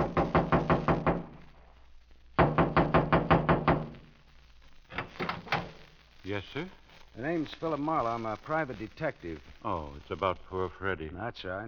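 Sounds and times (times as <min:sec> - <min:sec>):
knocking on a trailer door in a clearing: 0:00.0 - 0:01.3, 0:02.4 - 0:03.9
speech: 0:06.3 - 0:11.6.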